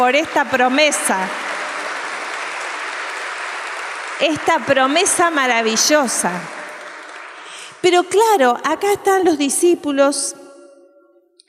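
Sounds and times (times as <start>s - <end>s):
speech: 0.0s - 1.4s, 4.2s - 6.6s, 7.8s - 10.4s
crowd applauding: 0.0s - 7.8s.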